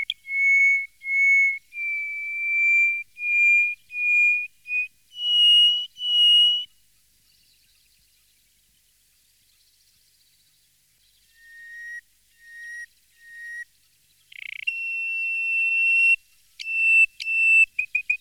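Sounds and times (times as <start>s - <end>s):
greater hoopoe-lark singing in the desert: 0.0s - 6.7s, 11.2s - 18.2s.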